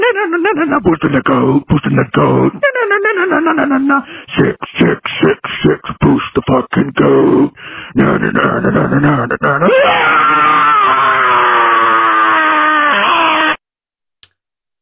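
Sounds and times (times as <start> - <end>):
speech: 0.4 - 11.2
person screaming on a voicemail: 9.6 - 13.6.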